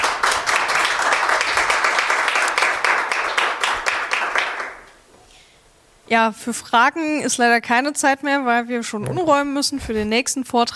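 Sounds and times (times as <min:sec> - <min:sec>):
audience applause: 0:00.0 - 0:04.9
speech: 0:06.1 - 0:10.7.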